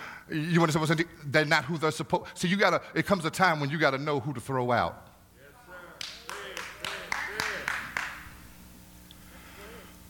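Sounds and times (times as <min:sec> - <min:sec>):
speech: 0:00.3 - 0:05.1
single person clapping hard and fast: 0:06.0 - 0:08.3.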